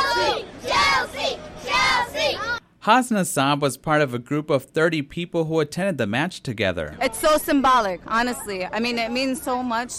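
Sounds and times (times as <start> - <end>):
soccer fans cheering and chanting at a match: 0.0 - 2.6
speech: 2.8 - 9.9.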